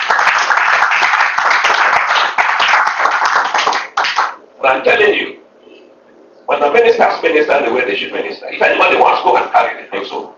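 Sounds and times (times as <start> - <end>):
crowd clapping: 0.0 - 4.4
speech: 4.6 - 5.4, 6.5 - 10.3.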